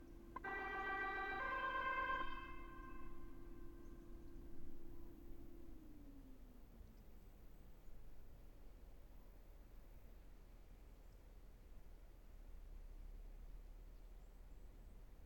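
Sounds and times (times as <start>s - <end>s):
2013 Volvo V70 ambulance siren: 0.0s - 8.4s.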